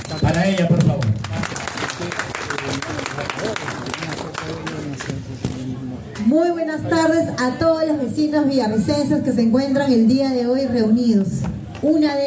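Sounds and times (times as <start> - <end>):
audience applause: 0.0 - 5.0
speech: 0.2 - 1.4, 6.3 - 12.2.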